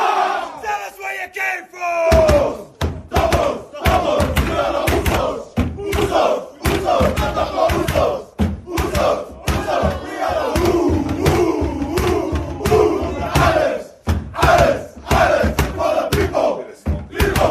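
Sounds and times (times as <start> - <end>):
rugby team chanting its team song in unison: 0.0 - 17.4
heavy stomping thuds: 2.1 - 17.4.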